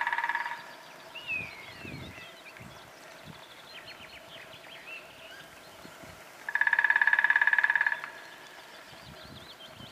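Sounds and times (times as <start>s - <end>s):
Dendrocopos minor: 0.0s - 0.8s, 6.5s - 8.4s.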